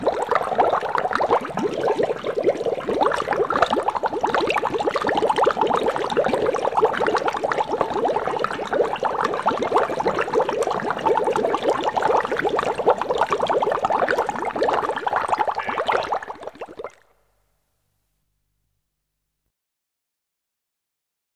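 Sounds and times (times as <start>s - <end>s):
water boiling: 0.0s - 17.0s.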